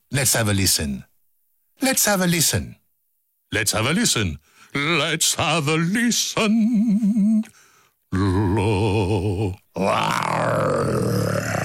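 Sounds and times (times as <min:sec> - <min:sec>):
speech: 0:00.2 - 0:01.1, 0:01.8 - 0:02.8, 0:03.5 - 0:11.6
person imitating a lion's roar: 0:08.1 - 0:11.6.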